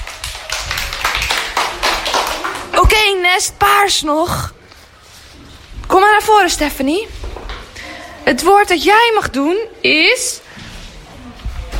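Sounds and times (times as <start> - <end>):
group clapping during a word-guessing game: 0.0 - 3.2
speech: 3.3 - 4.6, 6.2 - 7.2, 8.2 - 10.4.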